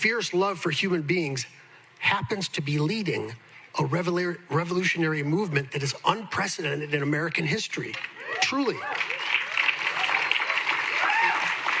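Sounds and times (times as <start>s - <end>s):
speech: 0.0s - 9.1s
audience applause: 8.0s - 11.7s
raised voices and whoops: 8.2s - 11.7s.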